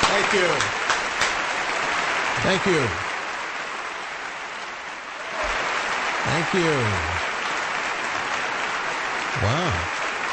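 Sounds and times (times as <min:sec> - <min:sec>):
audience applauding a polka orchestra: 0:00.0 - 0:10.3
speech: 0:00.3 - 0:00.8, 0:02.4 - 0:03.1, 0:06.2 - 0:07.2, 0:09.4 - 0:10.0.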